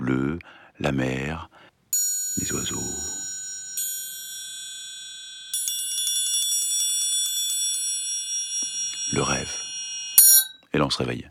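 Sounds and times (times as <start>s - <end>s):
speech: 0.1s - 1.6s, 2.4s - 3.2s, 10.8s - 11.3s
triangle being struck: 2.0s - 10.6s.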